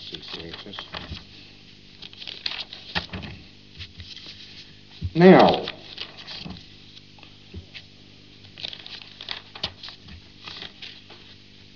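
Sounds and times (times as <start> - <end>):
paper rattling: 0.1 - 1.3, 2.0 - 6.7, 8.4 - 11.4
speech: 0.6 - 1.3, 5.2 - 5.7.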